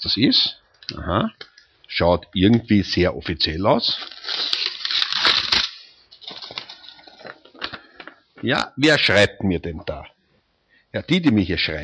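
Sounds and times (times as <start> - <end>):
speech: 0.0 - 4.5, 8.4 - 10.2, 10.9 - 11.8
paper rustling as a letter is pulled out of a large pile of mail: 3.9 - 8.2.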